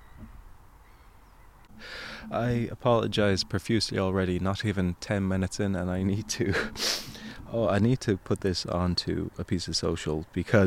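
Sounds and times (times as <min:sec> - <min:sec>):
seagulls calling: 0:00.0 - 0:04.4, 0:05.8 - 0:07.6
speech: 0:01.8 - 0:10.6.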